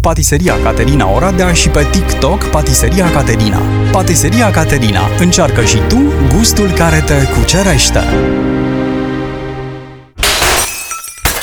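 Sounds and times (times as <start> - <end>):
speech: 0.0 - 8.7
glass shattering: 10.2 - 11.4.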